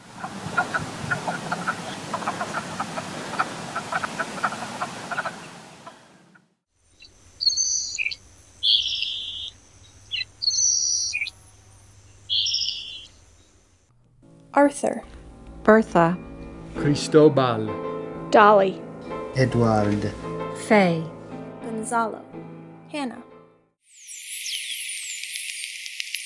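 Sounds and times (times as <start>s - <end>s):
chorus of wood frogs clucking and croaking: 0.2s - 6.4s, 7.0s - 13.8s
salt marsh sparrow's thin high buzzy phrases: 7.0s - 13.7s
speech: 14.6s - 15.1s, 15.7s - 18.8s, 19.4s - 21.2s, 21.9s - 22.3s, 23.0s - 23.2s.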